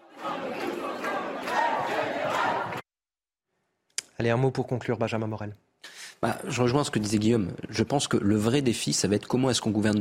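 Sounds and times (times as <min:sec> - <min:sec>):
protest crowd chanting slogans: 0:00.0 - 0:02.8
speech: 0:04.2 - 0:09.9.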